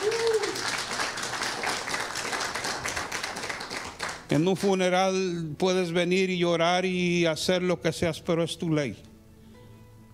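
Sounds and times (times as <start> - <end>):
audience applause: 0.0 - 4.3
speech: 4.3 - 9.1.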